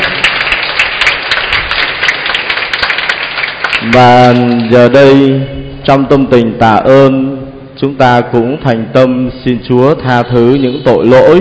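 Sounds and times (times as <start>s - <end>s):
crowd applause: 0.0s - 5.1s
speech: 3.9s - 11.3s.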